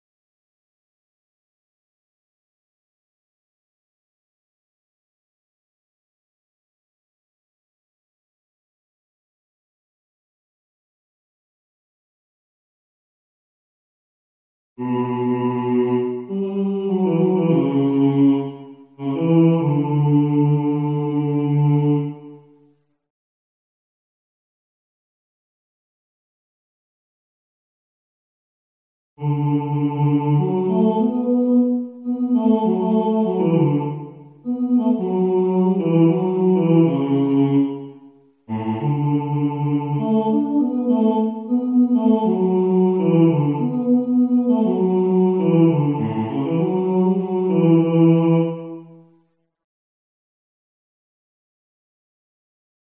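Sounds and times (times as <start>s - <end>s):
person singing: 14.8s - 22.3s, 29.2s - 48.9s.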